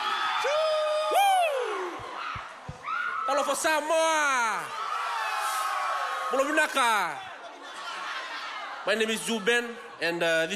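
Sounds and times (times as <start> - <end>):
audience cheering: 0.0 - 7.3
speech: 3.4 - 4.9, 6.3 - 7.3, 8.8 - 10.5.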